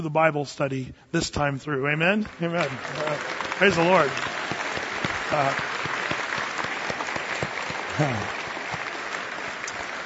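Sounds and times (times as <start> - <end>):
speech: 0.0 - 4.4, 5.3 - 5.8, 8.0 - 8.4
audience applause: 2.2 - 10.0.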